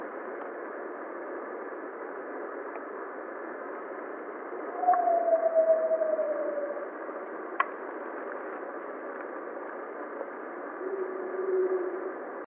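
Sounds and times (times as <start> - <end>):
howling: 4.6 - 7.1, 10.8 - 12.2.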